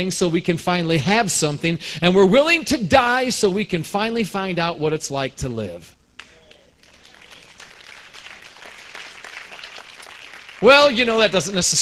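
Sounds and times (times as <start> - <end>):
speech: 0.0 - 6.0, 10.6 - 11.8
scattered applause from a few listeners: 6.2 - 11.8.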